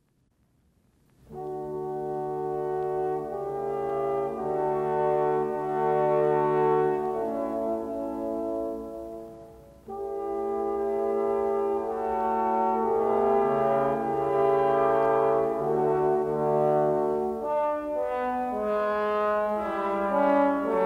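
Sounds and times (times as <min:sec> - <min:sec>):
four trombones playing in B flat major: 0:01.3 - 0:20.8.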